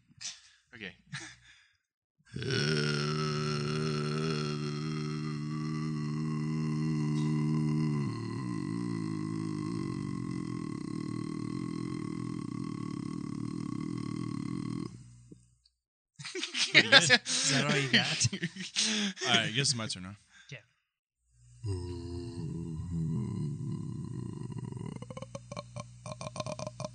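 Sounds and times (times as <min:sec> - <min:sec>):
speech: 0:00.8 - 0:01.3, 0:16.8 - 0:20.3
man singing a very low gravelly note: 0:02.4 - 0:14.4, 0:21.6 - 0:26.9
laughter: 0:16.2 - 0:19.6.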